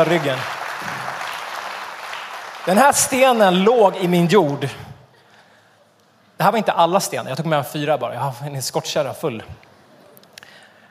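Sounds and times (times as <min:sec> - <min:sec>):
speech: 0:00.0 - 0:00.6, 0:02.6 - 0:04.9, 0:06.4 - 0:09.7
audience applause: 0:00.0 - 0:03.6.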